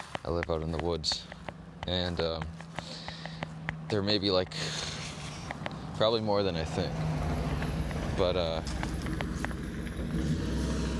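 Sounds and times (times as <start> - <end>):
speech: 0.3 - 2.6, 3.9 - 4.9, 6.0 - 7.2, 8.2 - 8.9
truck driving by outdoors near the woods: 3.6 - 10.9.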